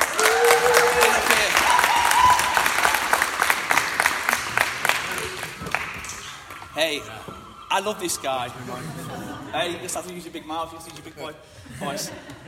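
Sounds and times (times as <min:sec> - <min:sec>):
audience applause: 0:00.0 - 0:08.8
laughter: 0:04.3 - 0:06.0, 0:07.8 - 0:10.2, 0:11.6 - 0:12.4
speech: 0:06.8 - 0:12.4.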